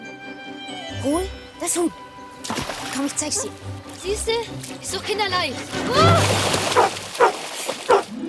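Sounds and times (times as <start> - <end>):
speech: 1.0 - 7.0
dog barking: 6.8 - 8.1.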